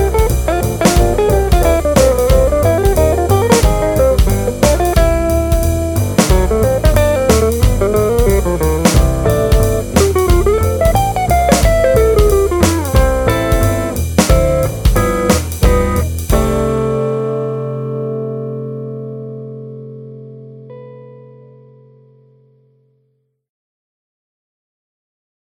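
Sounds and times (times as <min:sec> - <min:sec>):
jazz swing music: 0:00.0 - 0:17.4.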